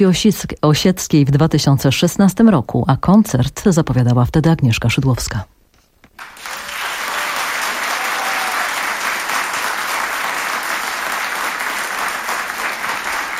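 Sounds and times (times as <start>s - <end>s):
speech: 0.0s - 5.6s
studio audience applause: 6.2s - 13.3s.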